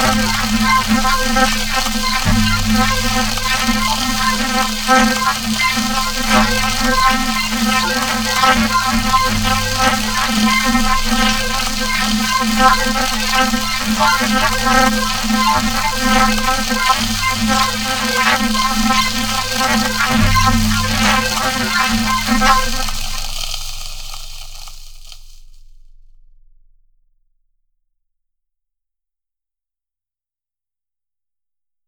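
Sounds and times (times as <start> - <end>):
high crazy atmospheric didgeridoo: 0.0 - 25.6.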